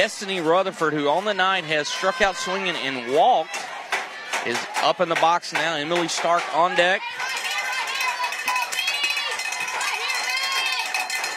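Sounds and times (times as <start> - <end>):
speech: 0.0 - 3.8, 4.4 - 7.2
crowd chanting at a softball game: 0.0 - 11.3
fans cheering and shouting at a softball game: 0.0 - 11.3.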